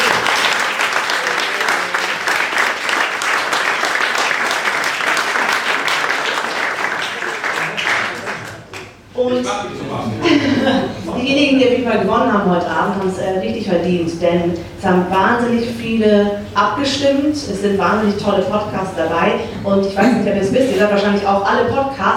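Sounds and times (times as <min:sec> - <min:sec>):
audience applause: 0:00.0 - 0:09.0
laughter: 0:09.6 - 0:11.2
speech: 0:11.9 - 0:22.1.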